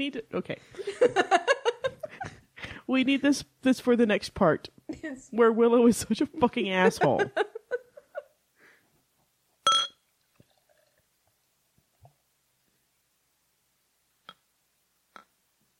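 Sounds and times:
speech: 0.0s - 1.5s, 2.9s - 7.4s
laughter: 0.8s - 2.4s, 6.8s - 8.3s
glass clinks: 9.6s - 10.0s
glassy taps: 9.6s - 10.5s
drink poured into a glass: 10.1s - 11.4s
liquid dripping: 10.1s - 11.4s.

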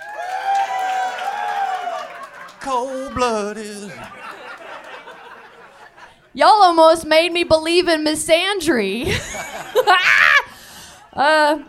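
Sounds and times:
audience cheering and clapping: 0.0s - 5.9s
laughter: 1.7s - 6.3s, 9.0s - 10.5s
speech: 2.6s - 4.4s, 6.3s - 10.3s, 11.2s - 11.6s.

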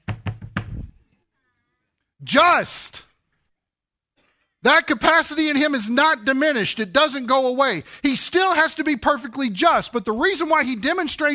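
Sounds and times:
hand banging on a pulpit: 0.0s - 0.9s
speech: 2.2s - 3.1s, 4.6s - 11.3s.

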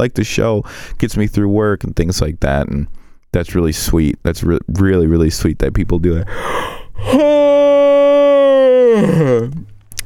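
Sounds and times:
speech: 0.0s - 7.4s, 9.0s - 9.7s
person yawning: 6.5s - 9.7s.

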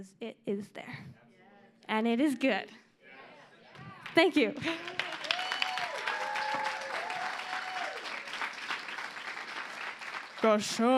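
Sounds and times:
speech: 0.0s - 1.2s, 1.9s - 2.8s, 4.2s - 5.0s, 10.4s - 10.9s
audience clapping: 3.8s - 10.9s.

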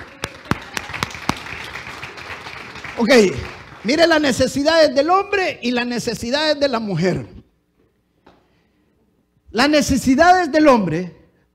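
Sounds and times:
audience applause: 0.0s - 4.2s
speech: 3.0s - 7.4s, 9.5s - 11.2s.

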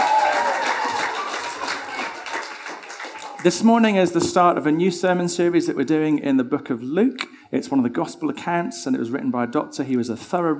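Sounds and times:
audience cheering: 0.0s - 3.7s
speech: 3.4s - 10.5s.

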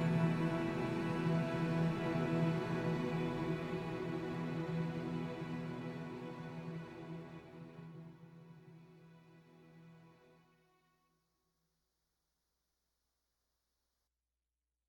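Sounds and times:
plaintive solo cello: 0.0s - 10.2s.

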